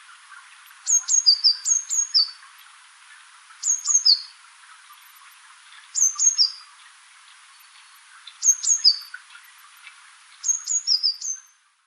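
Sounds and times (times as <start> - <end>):
faint background hiss: 0.0 - 11.8
Eurasian blue tit calls: 0.8 - 2.4, 3.6 - 4.3, 6.0 - 6.7, 8.4 - 9.2, 10.4 - 11.4.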